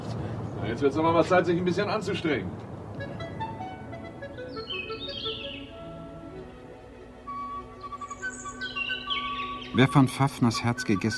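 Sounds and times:
speech: 0.7s - 2.7s, 9.8s - 11.1s
birds chirping and warbling: 3.1s - 11.1s.

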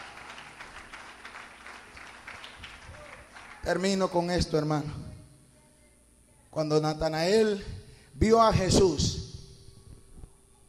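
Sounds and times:
audience applauding the Lord: 0.0s - 3.9s
speech: 3.6s - 5.2s, 6.6s - 9.2s.

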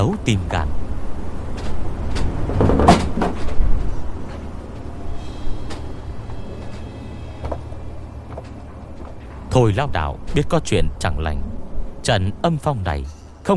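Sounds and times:
speech: 0.0s - 0.7s, 9.6s - 13.5s
door banging open and shut: 1.6s - 3.7s.

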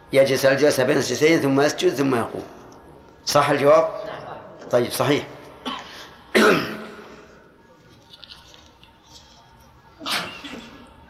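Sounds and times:
speech: 0.1s - 2.6s, 3.2s - 5.4s
person sneezing during a religious lesson: 5.6s - 7.2s, 10.0s - 10.8s.

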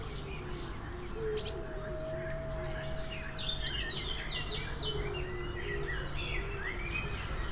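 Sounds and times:
birds chirping with bright chirps and warbled phrases: 0.1s - 7.4s
steady low rumbling drone: 1.2s - 5.7s
brief tonal hum: 1.5s - 5.3s.

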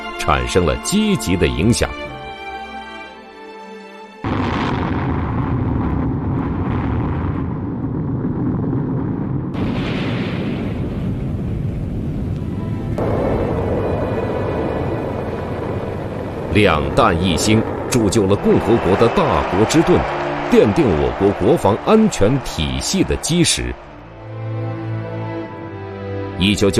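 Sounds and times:
speech: 0.2s - 2.1s, 16.6s - 23.9s, 26.4s - 26.7s
liquid hydrogen-oxygen rocket engine ground test: 4.3s - 20.3s.

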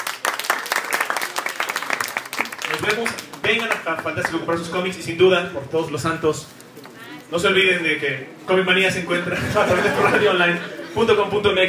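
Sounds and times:
audience applause at a comic-book talk event about Marvel Now: 0.0s - 4.4s
speech: 2.8s - 6.6s, 7.3s - 11.6s
laughter: 9.2s - 11.3s.

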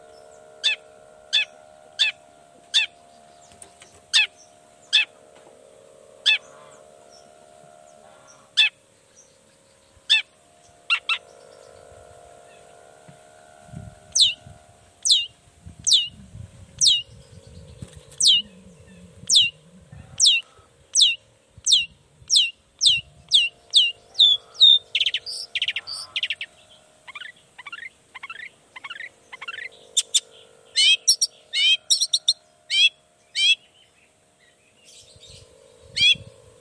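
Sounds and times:
low background hum: 0.0s - 36.5s
Long-tailed shrike calling: 0.6s - 3.5s, 4.1s - 5.2s, 6.2s - 7.2s, 8.1s - 8.8s, 10.1s - 11.8s, 14.2s - 14.4s, 15.0s - 16.2s, 16.8s - 17.1s, 18.1s - 33.8s, 34.9s - 36.5s.

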